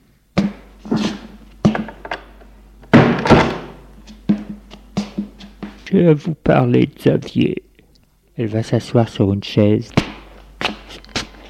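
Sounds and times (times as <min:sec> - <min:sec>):
door being opened: 0:01.6 - 0:03.8
speech: 0:05.9 - 0:07.7, 0:08.4 - 0:10.0.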